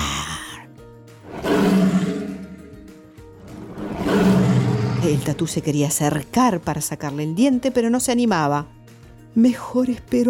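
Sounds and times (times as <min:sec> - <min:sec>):
wildcat roaring: 0:01.2 - 0:05.5
wildcat rumbling growl: 0:01.2 - 0:05.7
speech: 0:05.0 - 0:08.8, 0:09.4 - 0:10.2.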